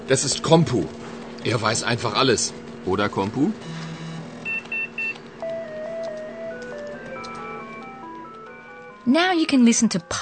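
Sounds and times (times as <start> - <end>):
speech: 0.1 - 3.8, 9.1 - 10.1
whistled melody played electronically: 3.6 - 10.1.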